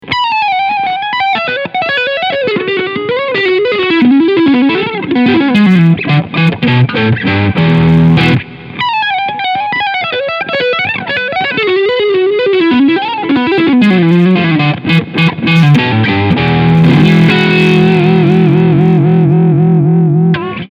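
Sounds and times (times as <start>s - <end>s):
overdriven single coil electric guitar: 0.0s - 20.7s.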